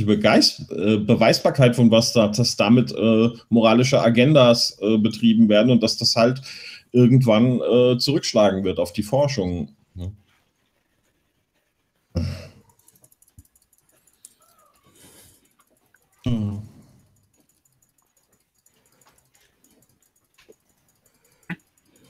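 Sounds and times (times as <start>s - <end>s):
speech: 0.0s - 10.2s, 12.2s - 12.4s, 16.2s - 16.6s
hard clicking of a computer mouse: 12.5s - 22.0s.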